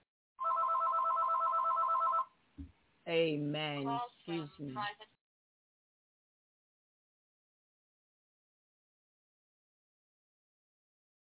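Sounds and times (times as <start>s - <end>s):
telephone ringing from a private caller: 0.4s - 2.4s
speech: 3.1s - 5.1s.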